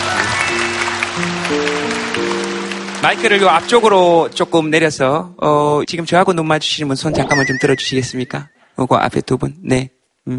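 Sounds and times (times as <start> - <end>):
audience applause: 0.0 - 4.2
speech: 3.0 - 10.3.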